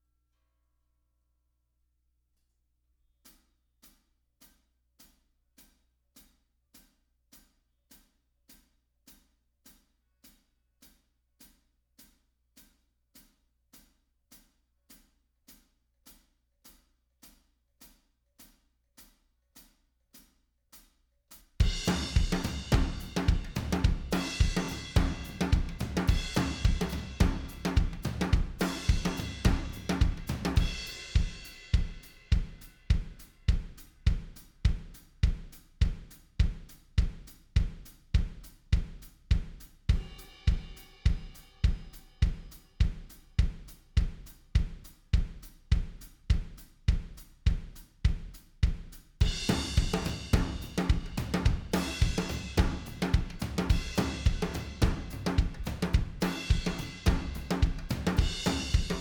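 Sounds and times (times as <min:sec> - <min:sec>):
drums: 0:21.3 - 0:58.9.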